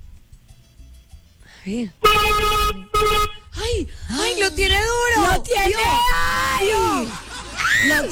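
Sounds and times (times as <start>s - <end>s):
speech: 1.6s - 3.0s, 3.7s - 7.2s
car horn blasts: 2.0s - 3.7s
laughter: 6.2s - 8.1s.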